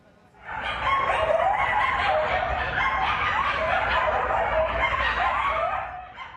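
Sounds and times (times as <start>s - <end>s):
pack of coyotes howling and barking: 0.4s - 6.3s.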